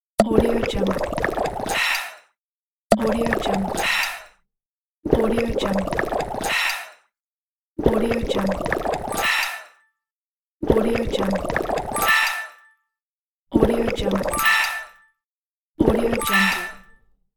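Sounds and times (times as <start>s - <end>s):
potion drinking: 0.2s - 2.2s, 2.9s - 4.3s, 5.1s - 6.9s, 7.8s - 9.7s, 10.6s - 12.6s, 13.6s - 15.0s, 15.8s - 17.0s.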